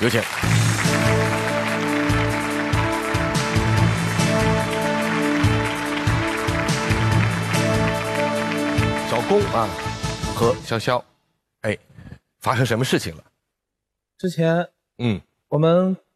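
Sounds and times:
speech: 0:00.0 - 0:01.2, 0:09.3 - 0:13.3, 0:14.2 - 0:16.0
audience applause: 0:00.0 - 0:10.5.

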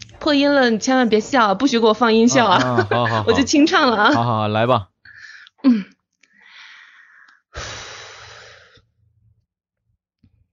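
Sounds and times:
speech: 0:00.2 - 0:04.9, 0:05.6 - 0:05.9
laughter: 0:02.3 - 0:04.8
deep breath taken before singing unaccompanied: 0:05.1 - 0:05.5, 0:06.3 - 0:08.8.

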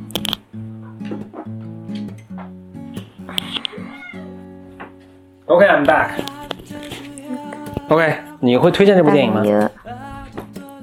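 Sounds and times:
cat meowing: 0:03.3 - 0:04.6
speech: 0:05.5 - 0:06.3, 0:07.9 - 0:09.8.

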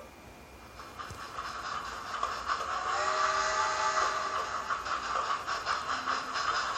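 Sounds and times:
little steam train hiss of steam: 0:00.8 - 0:06.7
little steam train multi-toned whistle: 0:02.7 - 0:04.8.

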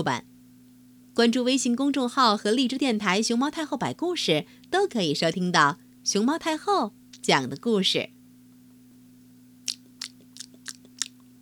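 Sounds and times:
speech: 0:00.0 - 0:00.3, 0:01.2 - 0:08.2
faint constant low hum: 0:00.0 - 0:11.4
crunchy chewing of food: 0:09.6 - 0:11.3.

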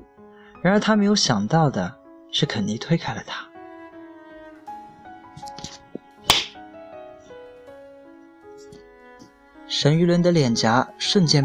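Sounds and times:
speech: 0:00.6 - 0:03.5, 0:09.8 - 0:11.4
slap across the face: 0:05.5 - 0:06.6.

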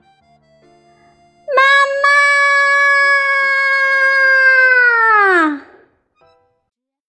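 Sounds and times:
shrill scream: 0:01.5 - 0:05.8.

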